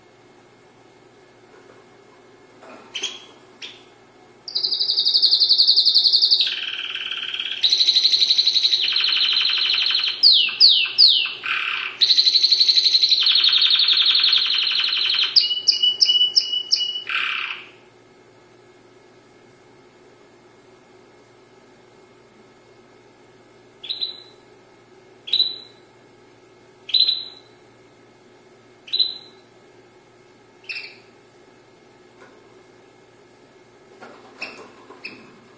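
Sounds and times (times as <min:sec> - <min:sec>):
faint steady hum: 0:00.0 - 0:35.5
Dutch canary song: 0:02.9 - 0:03.9, 0:04.5 - 0:17.8, 0:23.8 - 0:24.5, 0:25.2 - 0:25.9, 0:26.8 - 0:27.6, 0:28.8 - 0:29.5, 0:30.6 - 0:31.1, 0:34.4 - 0:35.3.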